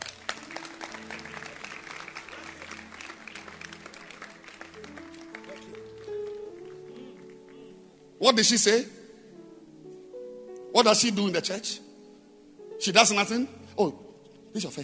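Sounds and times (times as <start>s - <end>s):
crowd clapping hands: 0.0s - 7.8s
sustained low musical tones: 0.0s - 14.8s
speech: 8.2s - 9.0s, 10.8s - 11.9s, 12.8s - 14.0s, 14.6s - 14.8s.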